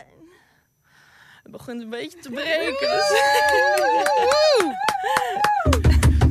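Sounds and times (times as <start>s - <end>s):
speech: 1.7s - 5.6s
enthusiastic hand clapping: 3.4s - 6.2s.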